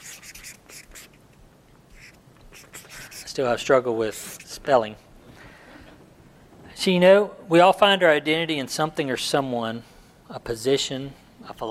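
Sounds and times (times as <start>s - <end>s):
word being written by hand: 0.0s - 1.2s, 1.9s - 3.3s
speech: 3.4s - 5.1s, 6.8s - 11.6s.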